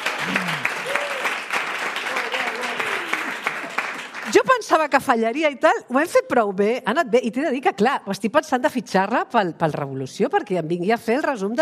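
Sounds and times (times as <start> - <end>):
studio audience applause: 0.0 - 4.5
speech: 4.4 - 11.5.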